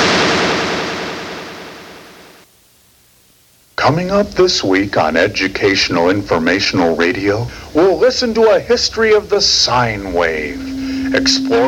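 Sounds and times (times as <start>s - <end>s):
squirrel gun blast: 0.0s - 2.4s
speech: 3.8s - 11.6s.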